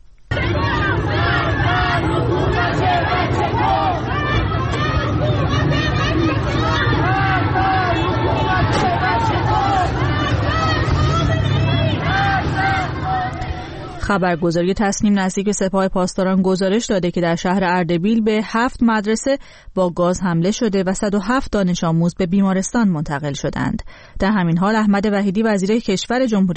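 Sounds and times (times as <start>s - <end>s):
protest crowd chanting slogans: 0.3s - 14.6s
speech: 14.1s - 26.5s.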